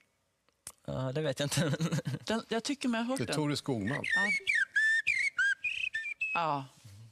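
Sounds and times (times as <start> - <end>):
speech: 0.9 - 4.5, 6.3 - 6.8
laughter: 1.5 - 2.3
blackbird song: 3.7 - 6.6.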